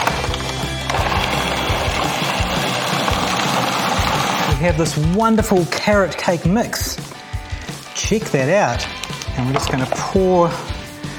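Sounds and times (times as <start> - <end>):
blender blending a thick fruit and coconut mixture: 0.0 - 4.6
speech: 4.6 - 7.1, 8.1 - 10.7.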